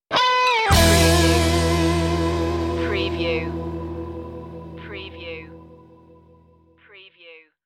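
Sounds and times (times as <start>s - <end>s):
delta sound stinger: 0.8s - 6.6s.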